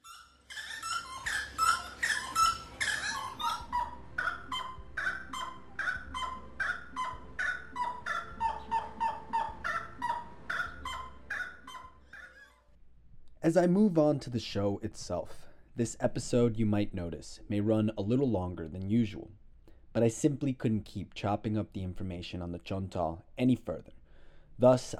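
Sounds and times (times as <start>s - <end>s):
rail calling: 0.0s - 12.6s
speech: 13.5s - 19.4s, 20.0s - 24.0s, 24.6s - 24.9s.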